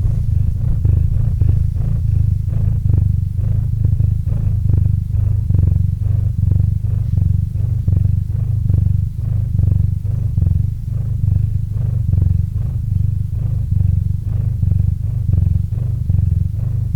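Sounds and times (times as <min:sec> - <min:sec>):
domestic cat purring: 0:00.0 - 0:16.9.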